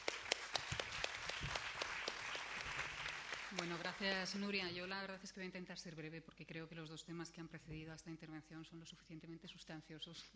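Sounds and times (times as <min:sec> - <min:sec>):
audience applause: 0:00.0 - 0:04.4
speech: 0:03.6 - 0:10.3.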